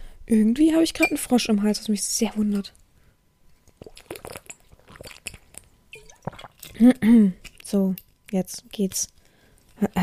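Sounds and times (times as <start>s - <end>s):
speech: 0.3s - 2.8s, 6.8s - 9.2s
person taking a sip of a drink: 3.5s - 6.8s.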